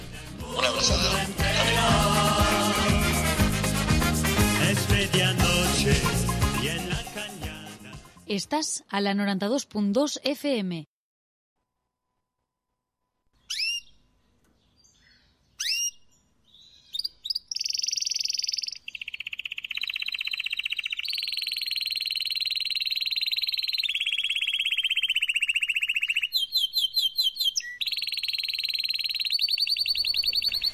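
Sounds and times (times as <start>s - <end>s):
canary singing: 0.5s - 3.8s, 4.6s - 7.3s, 13.4s - 30.7s
speech: 8.3s - 10.9s.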